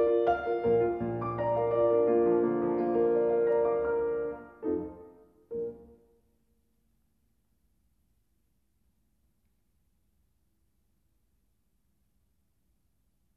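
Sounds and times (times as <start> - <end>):
romantic piano piece: 0.0 - 6.2.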